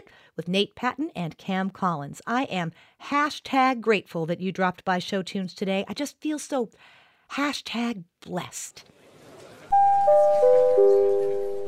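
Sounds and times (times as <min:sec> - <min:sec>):
speech: 0:00.4 - 0:09.0
theatre bell chimes signalling the end of intermission: 0:09.7 - 0:11.6.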